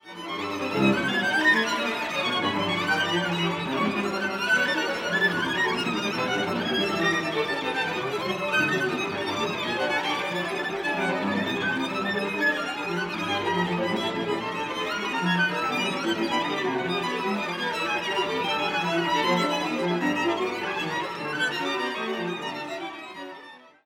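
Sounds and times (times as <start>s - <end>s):
string quartet: 0.0s - 23.8s.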